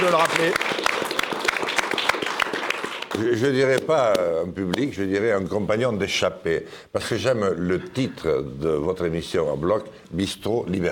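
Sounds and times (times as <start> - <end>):
speech: 0.0 - 0.9, 3.2 - 10.9
audience applause: 0.0 - 3.4.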